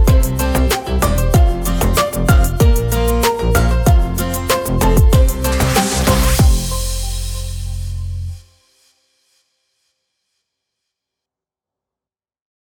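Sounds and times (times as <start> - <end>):
short funny tropical house background music for video vlog: 0.0 - 8.4.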